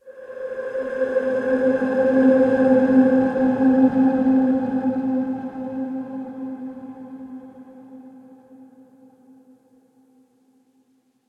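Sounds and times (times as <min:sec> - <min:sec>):
short airy tactical synth pad: 0:00.0 - 0:07.8.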